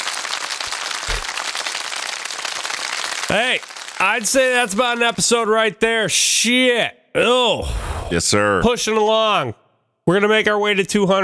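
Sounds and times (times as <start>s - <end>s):
round of applause: 0.0s - 5.3s
speech: 3.3s - 11.2s.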